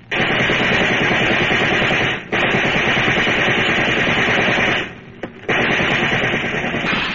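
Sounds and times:
police riot guns firing: 0.0s - 7.1s.

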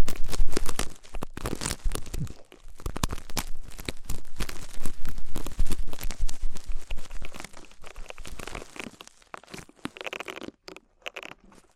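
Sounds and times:
ASMR ear treatment crinkling, crunching and tearing: 0.0s - 11.7s.

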